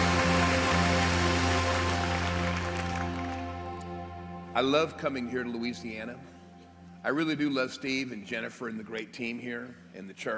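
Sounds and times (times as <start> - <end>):
audience clapping: 0.0 - 4.1
speech: 4.6 - 6.3, 7.0 - 10.3.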